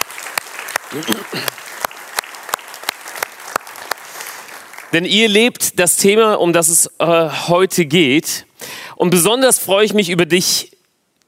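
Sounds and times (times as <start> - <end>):
audience applause: 0.0 - 5.0
speech: 0.9 - 1.7, 4.9 - 10.8.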